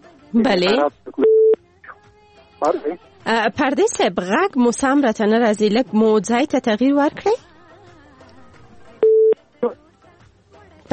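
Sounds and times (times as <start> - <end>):
speech: 0.3 - 1.2, 2.6 - 7.4
telephone tones as a phone call is cut off: 1.2 - 1.6, 9.0 - 9.8.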